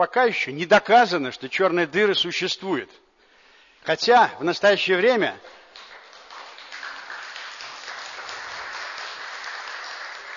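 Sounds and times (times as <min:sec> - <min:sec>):
speech: 0:00.0 - 0:03.0, 0:03.8 - 0:05.6
audience applause: 0:05.7 - 0:10.3.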